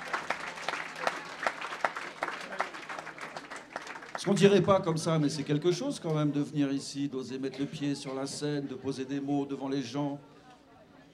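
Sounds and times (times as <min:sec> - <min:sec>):
audience applause: 0:00.0 - 0:04.8
speech: 0:04.2 - 0:10.3.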